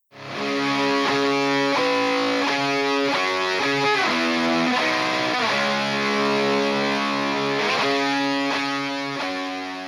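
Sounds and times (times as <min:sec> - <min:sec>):
heavily distorted electric guitar playing high chords: 0:00.1 - 0:09.8.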